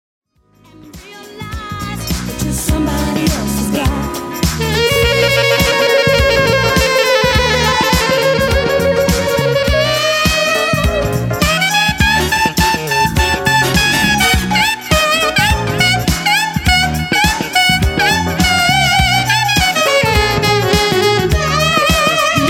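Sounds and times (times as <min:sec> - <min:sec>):
saxophone: 0:00.9 - 0:22.4.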